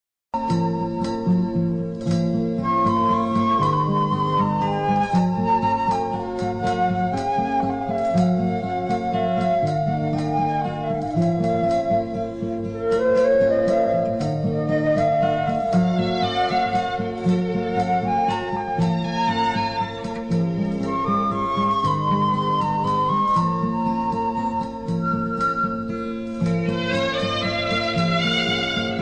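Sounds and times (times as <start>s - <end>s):
emotional music: 0.4s - 29.0s.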